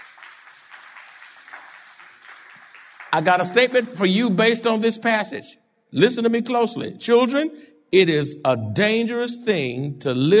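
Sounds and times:
audience applause: 0.0 - 3.9
speech: 3.1 - 10.3.

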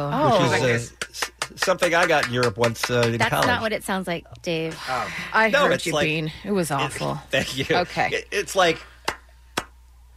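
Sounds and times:
speech: 0.0 - 8.9
Viking clap: 0.9 - 3.5, 9.0 - 9.8.

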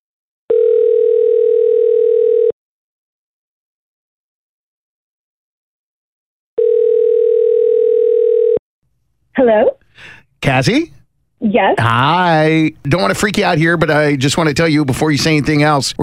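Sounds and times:
telephone line tones while a call is placed: 0.5 - 2.6, 6.6 - 8.6
speech: 9.5 - 16.0.

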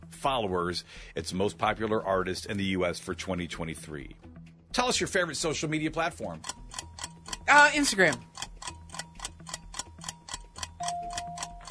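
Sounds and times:
speech: 0.2 - 6.8, 7.5 - 8.5
ticking quiz timer: 3.1 - 11.6.

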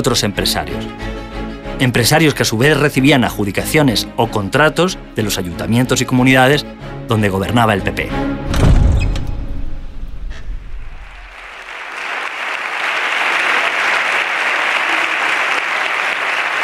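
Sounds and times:
speech: 0.0 - 1.1, 1.8 - 8.7
applause for a leader in parliament: 10.9 - 16.6.

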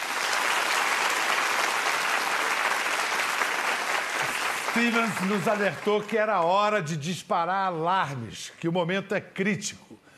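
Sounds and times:
studio audience applause: 0.0 - 6.8
speech: 4.8 - 9.9.

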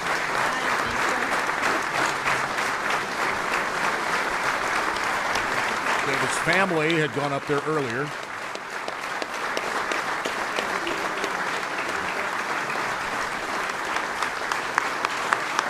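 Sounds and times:
audience applauding at a ceremony: 0.0 - 15.6
speech: 6.4 - 8.2.

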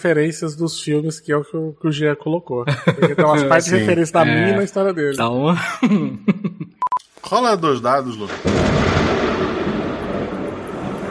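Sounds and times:
speech: 0.0 - 6.4, 7.3 - 8.8
laughter: 2.7 - 4.7, 5.5 - 6.8
thunder clap from a nearby lightning strike: 8.2 - 11.0.

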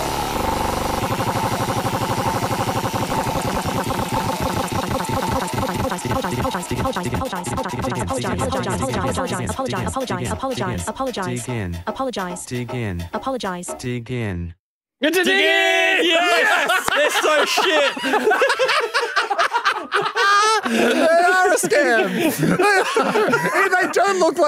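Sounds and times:
randomised decision wheel spinning: 0.0 - 11.9
laughter: 4.5 - 12.9, 15.4 - 24.4
speech: 6.2 - 19.0, 19.9 - 24.4.

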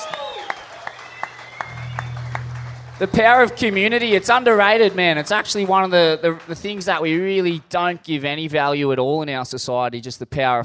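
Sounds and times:
audience applause: 0.0 - 7.4
speech: 3.0 - 10.6.

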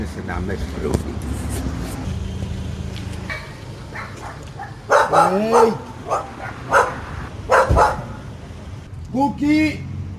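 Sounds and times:
speech: 0.0 - 1.8, 5.1 - 6.8, 9.1 - 9.8
small spaniel barking: 3.3 - 8.2.

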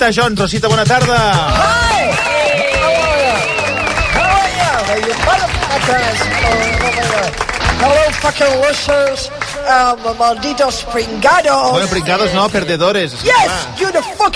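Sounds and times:
speech: 0.0 - 2.4, 4.9 - 14.3
audience applause welcoming a guest: 1.6 - 12.5.

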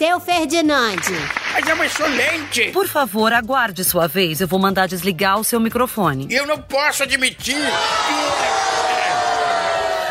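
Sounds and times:
speech: 0.0 - 9.0
studio audience cheering and shouting: 7.5 - 10.0.

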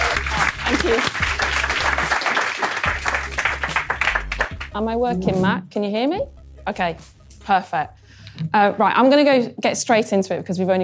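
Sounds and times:
crowd applauding: 0.0 - 4.8
speech: 0.8 - 1.3, 4.8 - 10.8.

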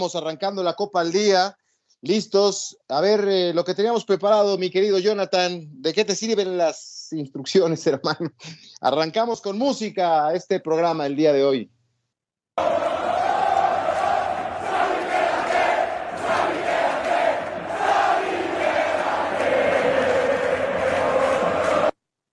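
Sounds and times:
speech: 0.0 - 11.8, 12.6 - 13.1
football stadium fans chanting at the Bernabéu: 12.6 - 22.0.

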